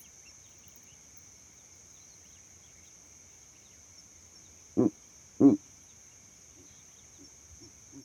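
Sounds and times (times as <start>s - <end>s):
owl hooting at night: 4.8s - 5.6s.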